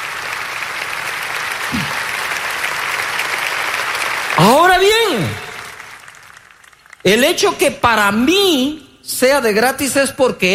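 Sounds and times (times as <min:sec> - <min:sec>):
audience applause: 0:00.0 - 0:07.2
speech: 0:07.1 - 0:10.5.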